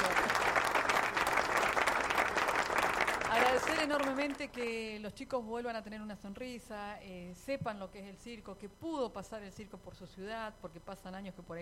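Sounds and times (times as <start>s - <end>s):
applause for a circus company: 0.0s - 4.7s
speech: 3.6s - 11.6s.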